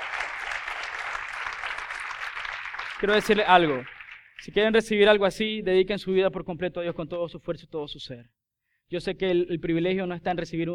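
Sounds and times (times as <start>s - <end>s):
audience applause: 0.0s - 4.5s
speech: 3.0s - 10.7s.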